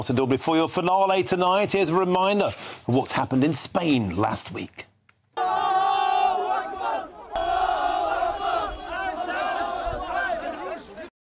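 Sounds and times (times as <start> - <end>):
speech: 0.0 - 4.9
crowd in Ceuta, Spain, shouting Allahu Akbar: 5.4 - 11.1.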